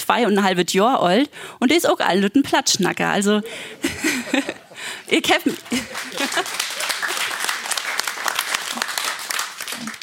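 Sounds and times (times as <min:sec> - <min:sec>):
speech: 0:00.1 - 0:06.7
laughter: 0:03.4 - 0:07.8
audience applause: 0:05.6 - 0:10.0.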